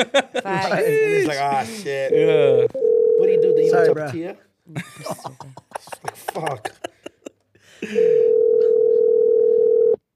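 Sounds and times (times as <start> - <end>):
laughter: 0.0 - 1.6, 4.7 - 8.0
speech: 0.0 - 6.8, 7.8 - 8.3
telephone call ringing out: 2.4 - 3.9, 8.0 - 10.0.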